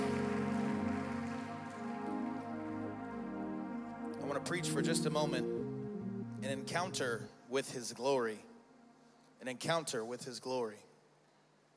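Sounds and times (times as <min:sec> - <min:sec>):
audience clapping: 0:00.0 - 0:04.2
speech: 0:04.4 - 0:05.6, 0:06.4 - 0:08.5, 0:09.4 - 0:10.9.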